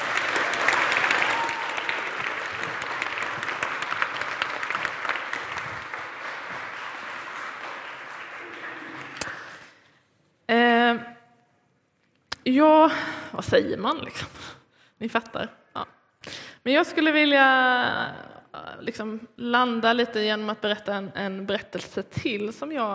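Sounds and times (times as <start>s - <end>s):
audience applause: 0.0s - 9.7s
speech: 12.5s - 15.6s, 16.6s - 18.2s, 18.8s - 22.9s.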